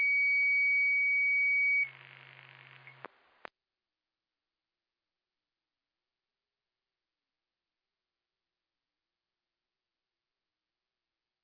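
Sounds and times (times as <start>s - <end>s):
siren: 0.0s - 2.0s.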